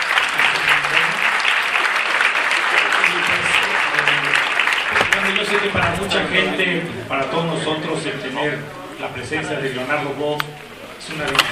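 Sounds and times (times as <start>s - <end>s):
audience applause: 0.0s - 9.0s
speech: 5.4s - 11.5s.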